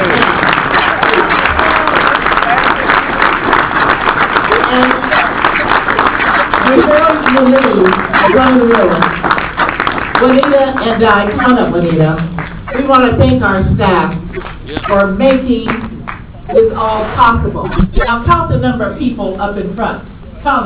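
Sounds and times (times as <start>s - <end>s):
audience applause: 0.0s - 12.8s
speech: 7.4s - 9.4s, 10.2s - 15.8s, 16.5s - 20.6s.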